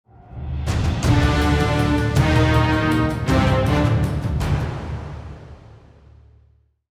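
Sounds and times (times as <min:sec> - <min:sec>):
musical stinger: 0:01.0 - 0:05.0.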